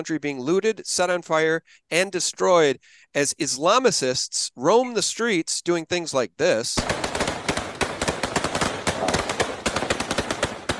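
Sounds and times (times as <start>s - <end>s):
speech: 0.0s - 7.2s
gunfire crackling during a street riot: 6.8s - 10.7s.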